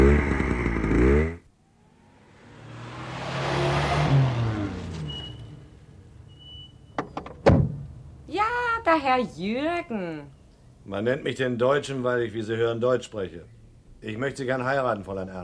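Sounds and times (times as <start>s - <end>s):
motor engine running and being switched off: 0.0s - 6.3s
speech: 8.9s - 15.4s.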